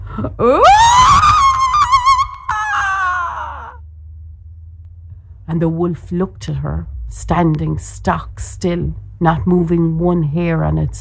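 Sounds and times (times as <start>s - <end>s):
speech: 0.2s - 1.0s, 5.5s - 10.9s
roaring, terrifying loud shrill scream: 0.5s - 3.8s.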